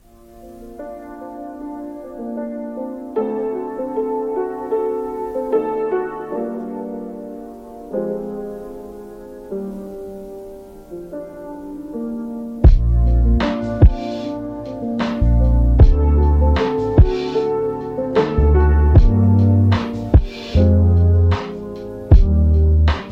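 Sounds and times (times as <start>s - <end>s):
lofi piano: 0.0s - 23.1s.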